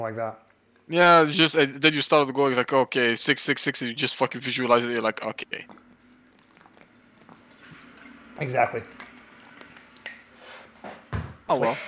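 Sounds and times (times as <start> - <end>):
speech: 0.0 - 5.9, 8.4 - 9.1, 10.8 - 11.8
faint steady hiss: 0.0 - 11.8
someone gulping a drink of water: 5.6 - 8.0.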